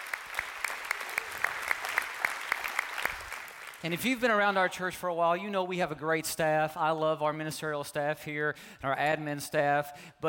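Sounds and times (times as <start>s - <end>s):
sharp clap: 0.0s - 3.8s
church congregation in northeast Oklahoma applauding: 0.0s - 4.7s
speech: 3.8s - 10.2s.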